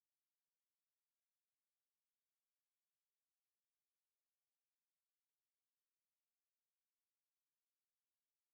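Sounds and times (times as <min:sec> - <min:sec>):
guitar: 0:00.0 - 0:08.5.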